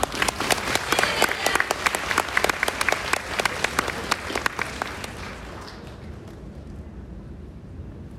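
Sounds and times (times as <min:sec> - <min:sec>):
audience applauding: 0:00.0 - 0:06.5.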